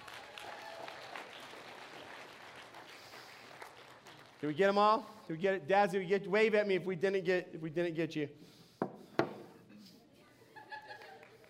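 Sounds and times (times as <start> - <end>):
audience round of applause: 0.0 - 4.6
speech: 4.4 - 8.6
laughter: 10.3 - 11.4.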